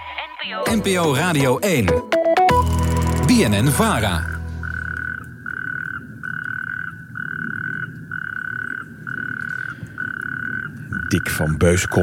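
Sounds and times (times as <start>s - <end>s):
speech: 0.4s - 2.2s, 3.3s - 4.4s, 11.1s - 12.0s
natterjack toads calling: 4.4s - 12.0s.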